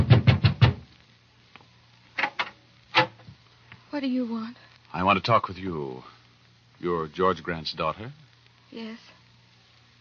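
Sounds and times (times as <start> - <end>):
knocking on a door: 0.0 - 0.8
speech: 4.0 - 6.1, 6.8 - 9.1.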